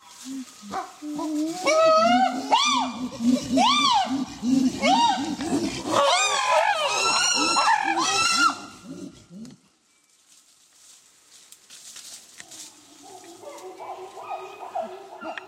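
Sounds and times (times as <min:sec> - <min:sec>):
chimpanzee pant hooting: 0:00.6 - 0:08.6.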